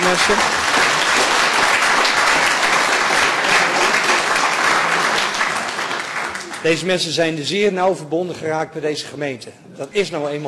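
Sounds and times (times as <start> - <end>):
audience applause: 0.0 - 6.8
speech: 0.1 - 0.9, 6.6 - 10.4.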